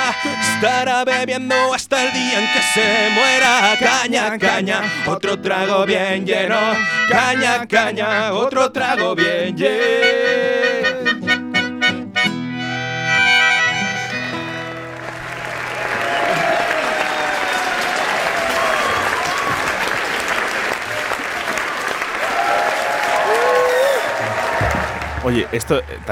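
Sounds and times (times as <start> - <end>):
speech: 0.2 - 10.6, 25.2 - 26.0
bright musical notes: 11.2 - 15.3
large audience applause: 14.3 - 26.0
scattered cheers and whistles: 15.1 - 26.0.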